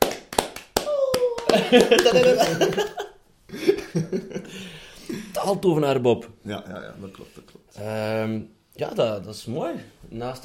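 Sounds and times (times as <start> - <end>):
hand claps: 0.0 - 3.1
person saying ooh: 0.8 - 1.7
laughter: 1.5 - 4.6
speech: 1.5 - 10.4.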